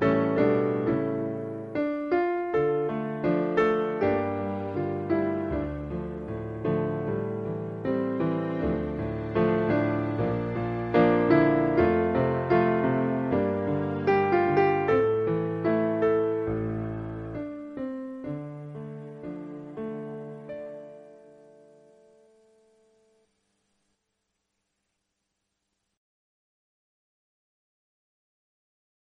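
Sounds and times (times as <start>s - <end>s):
piano: 0.0s - 24.3s.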